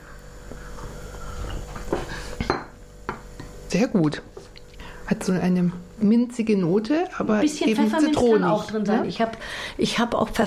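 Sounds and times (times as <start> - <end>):
ceramic cups clinking as set down: 2.4 - 2.8
speech: 3.7 - 4.4, 5.1 - 10.4.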